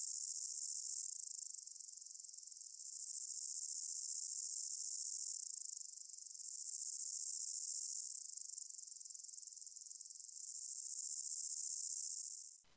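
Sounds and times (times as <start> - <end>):
reed grasshopper: 0.0 - 12.6.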